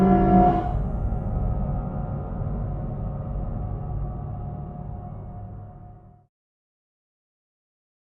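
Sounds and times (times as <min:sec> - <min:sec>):
tense upright piano drone: 0:00.0 - 0:06.3.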